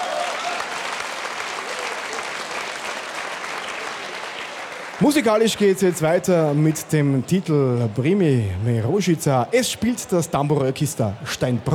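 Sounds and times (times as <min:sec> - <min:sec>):
audience applause: 0:00.0 - 0:08.5
speech: 0:05.0 - 0:11.7.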